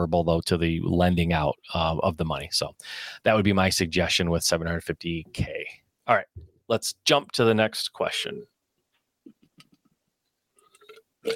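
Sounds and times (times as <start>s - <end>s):
speech: 0.0s - 8.5s
breathy exhale: 2.8s - 3.2s
person gulping water: 10.6s - 11.3s.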